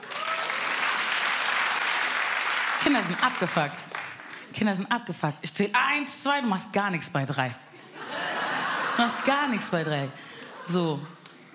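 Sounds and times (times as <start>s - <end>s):
comedy show audience clapping: 0.0s - 4.5s
speech: 2.8s - 3.9s, 4.5s - 7.7s, 9.0s - 11.2s
laughter: 7.8s - 11.5s.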